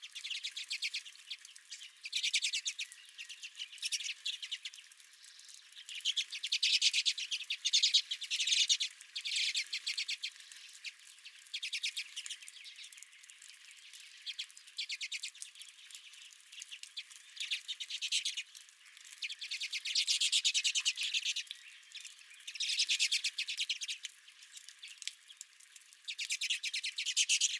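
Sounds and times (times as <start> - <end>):
redpolls chattering: 0.0 - 27.5.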